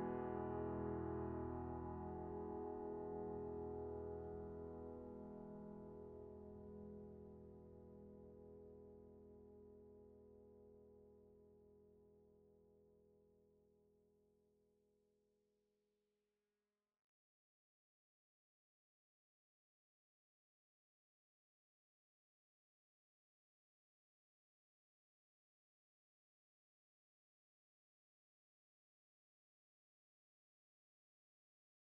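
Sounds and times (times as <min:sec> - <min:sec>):
piano: 0:00.0 - 0:11.6.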